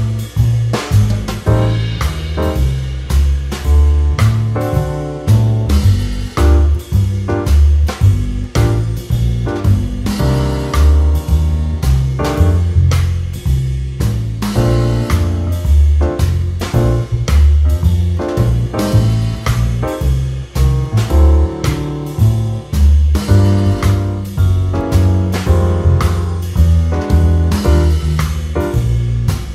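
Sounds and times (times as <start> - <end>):
backing track in G minor: 0.0 - 29.5.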